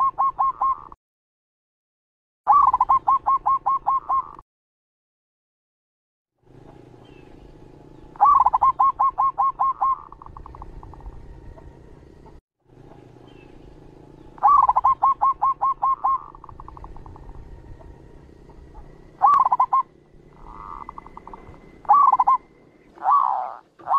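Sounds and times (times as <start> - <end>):
zebra dove cooing song: 0.0 - 1.0, 2.5 - 4.4, 8.1 - 11.7, 14.3 - 23.9.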